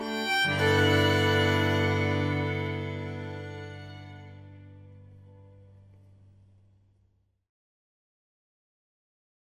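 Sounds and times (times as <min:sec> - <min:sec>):
traditional song melody: 0:00.0 - 0:05.6.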